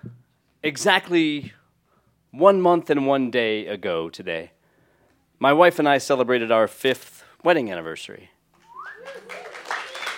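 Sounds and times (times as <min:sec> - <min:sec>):
speech: 0:00.6 - 0:01.6, 0:02.3 - 0:04.6, 0:05.4 - 0:08.4
whistles and whoops: 0:08.6 - 0:10.1
audience applause: 0:08.7 - 0:10.1.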